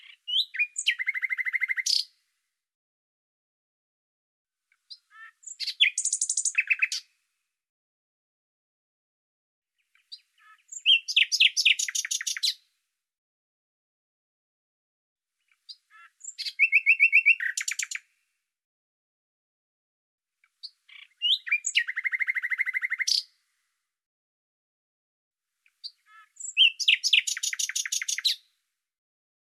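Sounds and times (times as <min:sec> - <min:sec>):
bird trilling song: 0:00.0 - 0:02.2, 0:04.7 - 0:07.1, 0:09.8 - 0:12.6, 0:15.4 - 0:18.1, 0:20.4 - 0:23.4, 0:25.6 - 0:28.5.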